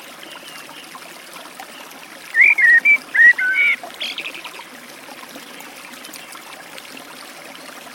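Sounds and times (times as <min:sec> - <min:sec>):
Eurasian blackbird delivering warbled whistles beside a forest stream: 0:01.7 - 0:04.6.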